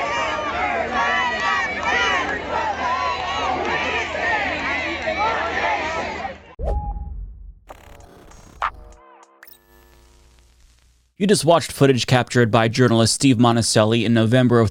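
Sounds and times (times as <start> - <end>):
crowd of QAnon followers murmuring in Dallas, Texas: 0.0 - 6.6
speech: 11.2 - 14.6.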